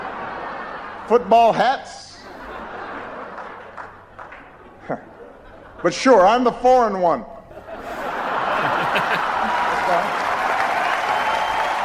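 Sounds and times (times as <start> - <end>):
laughter: 0.0 - 6.3, 7.4 - 11.6
speech: 1.1 - 2.0, 4.9 - 5.1, 5.8 - 7.3
audience applause after stand-up routine: 2.8 - 4.7, 8.2 - 11.8.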